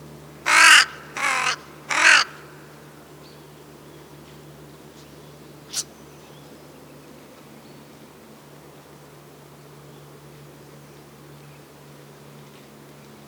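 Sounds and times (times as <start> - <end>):
crow cawing: 0.4 - 2.7.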